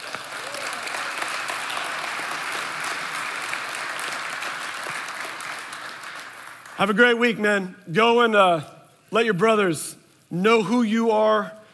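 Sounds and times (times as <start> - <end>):
audience round of applause: 0.0 - 6.8
speech: 6.8 - 11.6.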